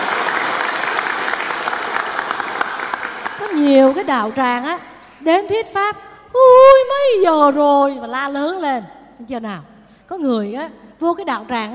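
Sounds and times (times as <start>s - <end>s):
crowd clapping: 0.0s - 4.5s
speech: 3.6s - 11.7s.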